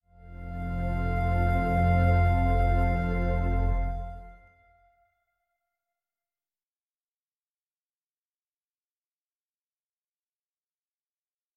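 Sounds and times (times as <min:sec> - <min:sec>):
interlude music: 0:00.1 - 0:04.8.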